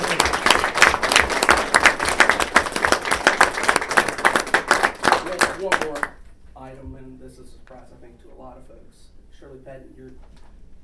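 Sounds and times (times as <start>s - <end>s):
round of applause: 0.0s - 6.2s
speech: 7.8s - 10.6s.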